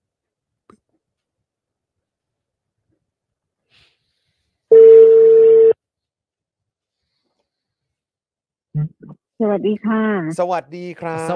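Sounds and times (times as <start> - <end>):
telephone ringback tone through a Bluetooth-connected phone: 4.7 - 5.8
speech: 9.4 - 11.3.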